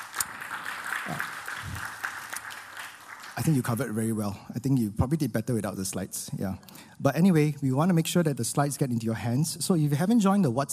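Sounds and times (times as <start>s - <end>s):
audience applause: 0.0s - 3.9s
speech: 1.1s - 1.3s, 3.4s - 10.7s.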